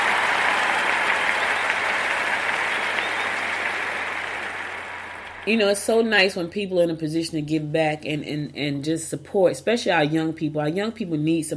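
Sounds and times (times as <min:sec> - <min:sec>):
audience applause: 0:00.0 - 0:05.5
speech: 0:05.5 - 0:11.5.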